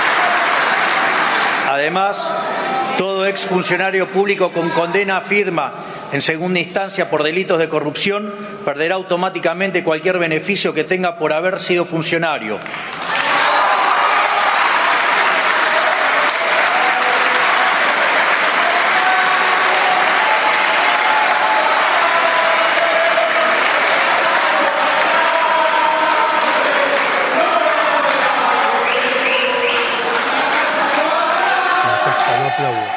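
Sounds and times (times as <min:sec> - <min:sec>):
applause in a legislative chamber: 0:00.0 - 0:02.0, 0:12.6 - 0:32.9
speech: 0:01.7 - 0:13.1.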